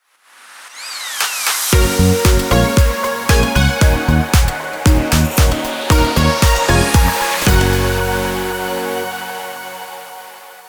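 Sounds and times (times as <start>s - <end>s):
jingle: 1.7s - 10.0s.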